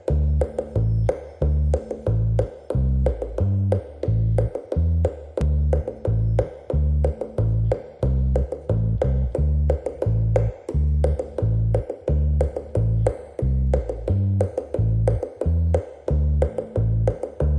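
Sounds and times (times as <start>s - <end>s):
bass: 0.0s - 17.5s
percussion: 0.0s - 17.5s.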